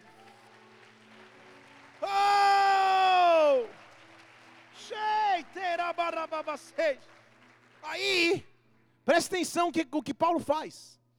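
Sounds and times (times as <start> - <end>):
crowd applauding in church: 0.0 - 8.5
speech: 6.4 - 7.2, 9.1 - 11.0.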